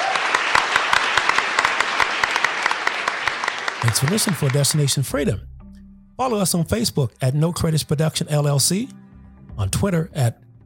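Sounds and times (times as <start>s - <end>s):
audience applause for a panel: 0.0s - 5.2s
speech: 3.8s - 5.6s, 6.2s - 9.0s, 9.6s - 10.4s.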